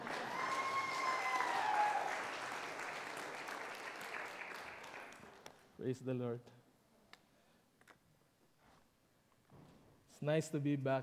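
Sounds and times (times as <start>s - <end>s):
audience clapping: 0.0s - 5.6s
speech: 5.8s - 6.6s, 10.2s - 11.0s.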